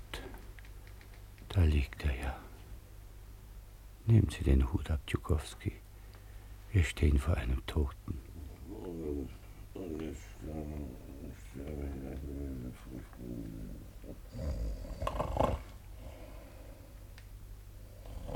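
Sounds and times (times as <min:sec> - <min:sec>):
speech: 0:01.6 - 0:02.5, 0:04.1 - 0:05.8, 0:06.7 - 0:08.3, 0:09.2 - 0:15.6
man snoring: 0:10.4 - 0:16.6, 0:17.9 - 0:18.3.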